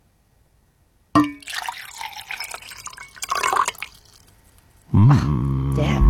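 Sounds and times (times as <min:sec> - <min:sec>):
liquid pouring into a glass: 0:01.2 - 0:04.4
person speaking: 0:04.9 - 0:06.0.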